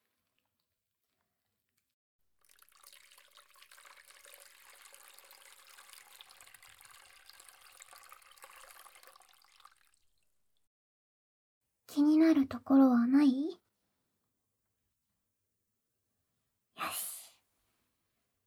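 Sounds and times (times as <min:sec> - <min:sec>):
running water rinsing shampoo out of hair: 0:02.4 - 0:10.2
speech: 0:12.4 - 0:13.6.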